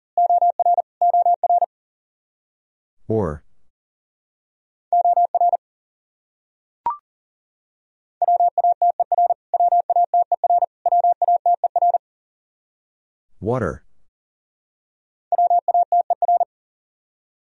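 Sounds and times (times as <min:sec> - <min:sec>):
fast Morse code beeps: 0:00.2 - 0:01.7, 0:05.0 - 0:05.6, 0:08.2 - 0:12.0, 0:15.3 - 0:16.5
speech: 0:03.1 - 0:03.4, 0:13.4 - 0:13.9.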